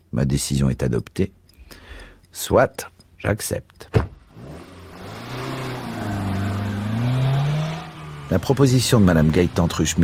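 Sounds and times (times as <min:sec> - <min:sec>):
speech: 0:00.1 - 0:01.4, 0:02.3 - 0:03.9, 0:08.3 - 0:10.0
car engine accelerating away from the kerb: 0:04.2 - 0:10.0.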